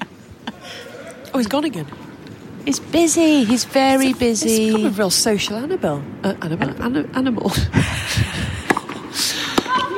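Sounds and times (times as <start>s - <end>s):
speech: 1.3s - 2.0s, 2.6s - 8.6s
tennis ball struck on a serve during a match: 8.7s - 9.8s.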